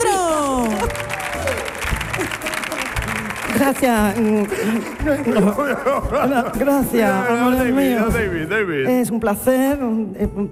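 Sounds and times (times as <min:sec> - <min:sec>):
audience applause: 0:00.0 - 0:06.1
laughter: 0:00.6 - 0:08.0
speech: 0:03.6 - 0:10.5.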